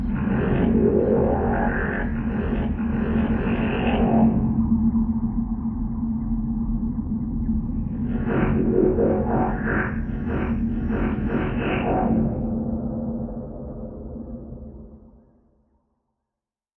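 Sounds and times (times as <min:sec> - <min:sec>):
steady low granular drone tone: 0:00.0 - 0:15.4.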